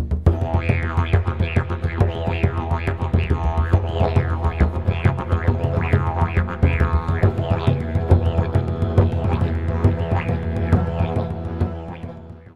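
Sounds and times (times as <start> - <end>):
didgeridoo playing: 0.2 - 12.5.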